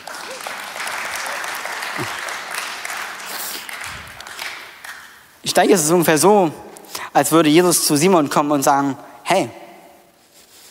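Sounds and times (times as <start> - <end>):
audience applause: 0.0 - 5.1
speech: 2.0 - 2.3, 5.6 - 6.6, 7.2 - 9.6.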